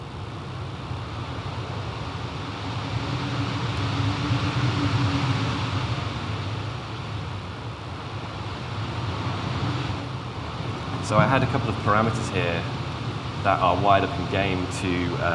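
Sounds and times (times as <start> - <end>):
background wind layer for a dawn scene in a video game: 0.0 - 15.3
speech: 11.1 - 12.8, 13.4 - 15.3.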